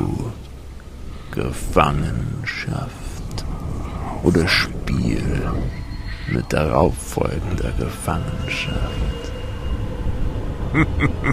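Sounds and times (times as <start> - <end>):
deep steady rumble of thunder: 0.4 - 11.3
speech: 1.4 - 3.1, 4.2 - 9.3, 10.7 - 11.3.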